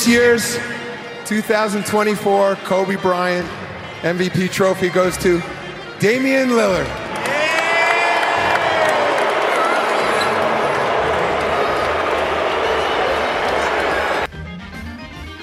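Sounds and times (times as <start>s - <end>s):
speech: 0.0s - 7.0s
big arena crowd booing: 7.1s - 14.3s.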